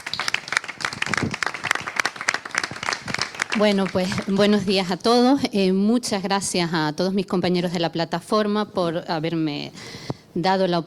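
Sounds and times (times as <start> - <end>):
audience applause: 0.0 - 4.4
speech: 3.6 - 10.8.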